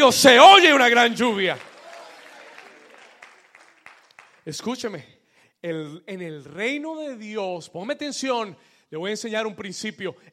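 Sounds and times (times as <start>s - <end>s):
speech: 0.0s - 1.7s, 4.5s - 10.3s
audience applauding loudly: 0.5s - 4.6s.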